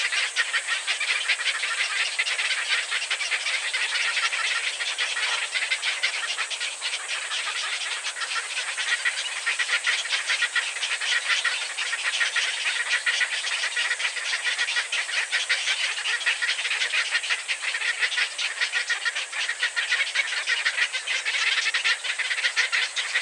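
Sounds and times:
heron calling: 0:00.0 - 0:23.1.

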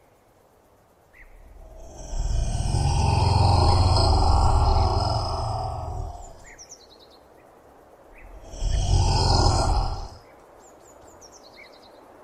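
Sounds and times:
Komodo dragon: 0:01.2 - 0:06.5, 0:08.1 - 0:10.2.

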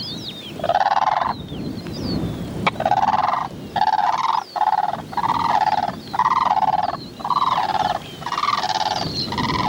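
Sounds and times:
bird giving rattling gobbles: 0:00.6 - 0:01.4, 0:02.6 - 0:09.6.

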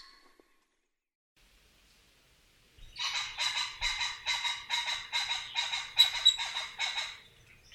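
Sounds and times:
pheasant calling: 0:01.9 - 0:07.7.

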